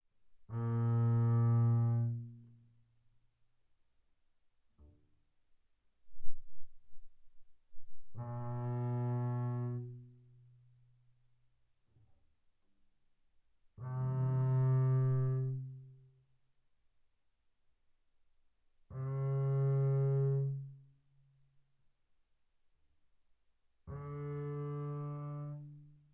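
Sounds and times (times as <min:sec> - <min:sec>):
double bass bowed arco on the A string mezzo forte: 0:00.4 - 0:02.6, 0:06.2 - 0:10.6, 0:13.8 - 0:16.0, 0:19.0 - 0:20.8, 0:23.9 - 0:26.0.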